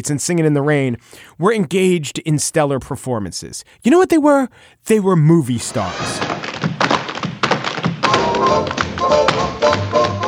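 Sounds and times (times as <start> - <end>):
speech: 0.0 - 6.5, 8.5 - 10.1
tap shoes striking a hard floor: 5.7 - 10.2.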